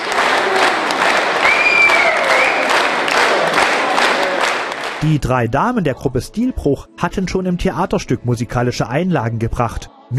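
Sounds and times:
audience applause: 0:00.0 - 0:05.0
speech: 0:05.0 - 0:10.1.

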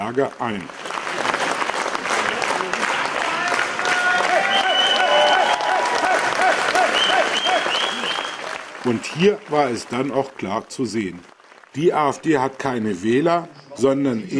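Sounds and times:
speech: 0:00.0 - 0:00.9, 0:08.8 - 0:14.3
loud crowd cheering: 0:00.8 - 0:10.4.

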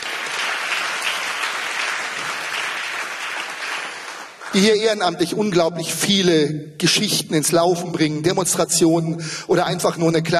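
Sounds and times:
audience applause: 0:00.0 - 0:04.6
speech: 0:04.5 - 0:10.3.

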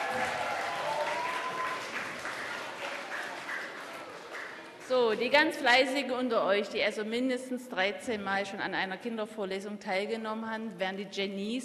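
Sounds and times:
audience applause: 0:00.0 - 0:04.9
speech: 0:04.9 - 0:11.6.

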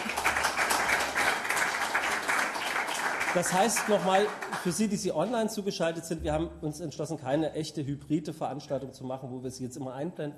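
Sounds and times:
audience applause: 0:00.0 - 0:05.0
speech: 0:03.3 - 0:10.3.

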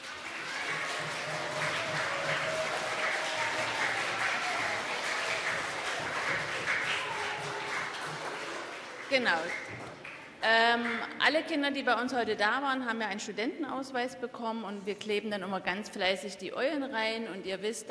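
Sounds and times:
audience applause: 0:00.0 - 0:11.0
speech: 0:09.1 - 0:09.6, 0:10.4 - 0:17.8.

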